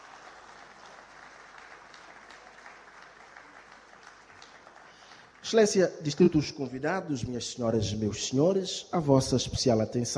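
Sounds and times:
audience applause: 0.0 - 5.8
speech: 5.5 - 10.1.

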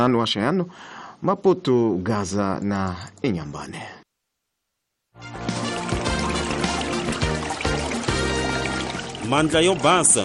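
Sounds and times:
speech: 0.0 - 4.0, 9.3 - 10.2
running water for washing hands with soap: 5.3 - 10.2.

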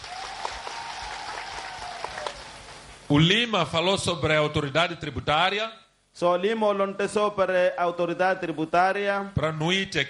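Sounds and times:
audience applause: 0.0 - 2.9
speech: 3.1 - 10.0.

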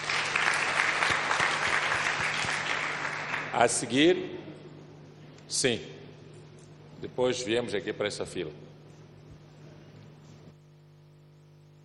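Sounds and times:
audience applause: 0.0 - 3.8
speech: 3.6 - 4.5, 5.5 - 6.0, 7.0 - 8.7.

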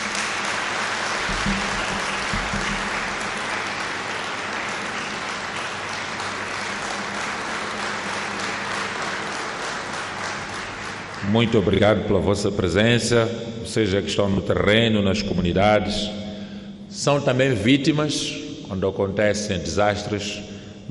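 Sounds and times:
audience applause: 0.0 - 11.4
speech: 11.3 - 16.2, 17.0 - 20.8.

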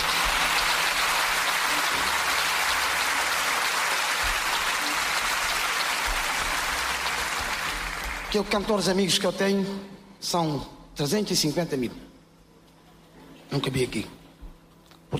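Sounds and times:
audience applause: 0.0 - 8.9
speech: 8.3 - 12.1, 13.5 - 14.2.

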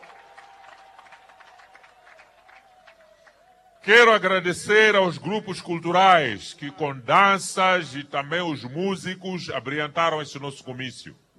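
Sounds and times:
crowd applauding for the pastor: 0.0 - 4.2
speech: 3.8 - 11.3.

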